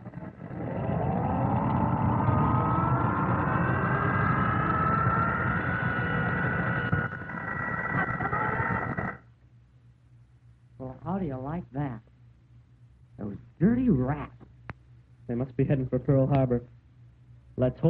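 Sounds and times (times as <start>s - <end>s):
squadron of warplanes flying overhead: 0.0s - 9.2s
speech: 13.6s - 14.3s, 15.3s - 16.8s, 17.6s - 17.8s.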